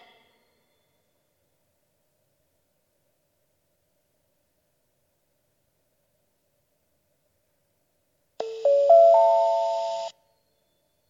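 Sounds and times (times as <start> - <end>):
Iiyama pass train station: 8.4 - 10.1.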